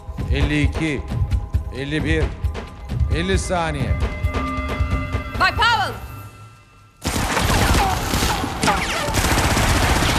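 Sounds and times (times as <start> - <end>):
speech: 0.3 - 2.4, 3.1 - 4.1, 5.4 - 6.0
burst of gunfire: 7.0 - 10.1.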